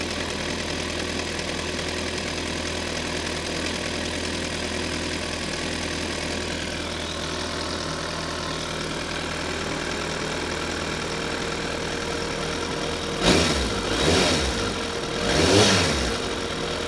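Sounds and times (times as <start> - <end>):
ZX-14 engine clacking: 0.0 - 16.8.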